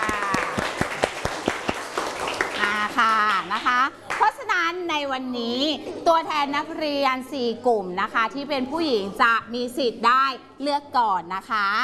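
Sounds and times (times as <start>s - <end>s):
audience applause: 0.0s - 3.5s
speech: 4.8s - 11.8s.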